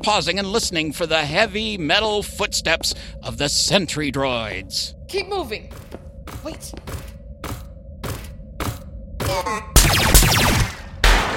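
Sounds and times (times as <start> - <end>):
speech: 0.0 - 7.1, 9.3 - 9.8
gunfire: 9.8 - 11.3.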